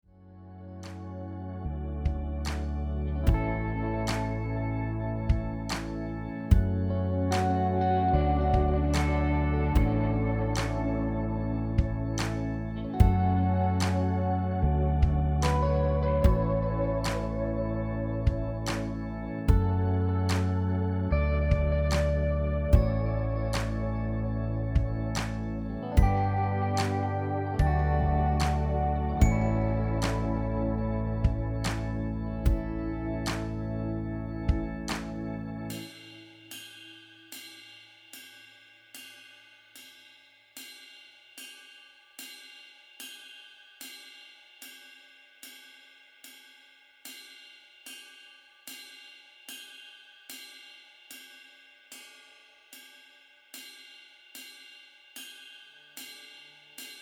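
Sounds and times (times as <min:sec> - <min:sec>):
rhythm: 0:02.1 - 0:36.4.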